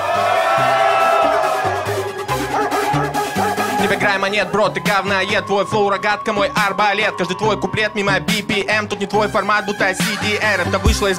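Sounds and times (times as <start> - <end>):
crowd cheering and shouting: 0.0 - 11.1
thumping bass beat: 0.8 - 5.4, 7.5 - 11.1
speech: 3.9 - 11.1.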